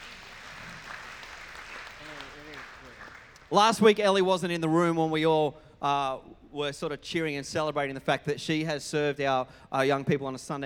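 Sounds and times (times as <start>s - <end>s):
audience applause: 0.0s - 3.5s
speech: 3.5s - 10.6s.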